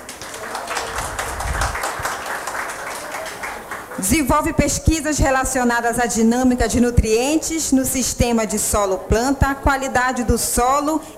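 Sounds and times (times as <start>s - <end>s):
crowd applause: 0.0s - 4.1s
speech: 4.0s - 11.1s.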